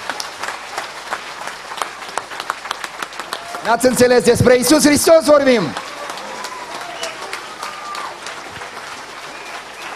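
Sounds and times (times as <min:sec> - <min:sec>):
audience applause: 0:00.0 - 0:09.9
speech: 0:03.6 - 0:05.8.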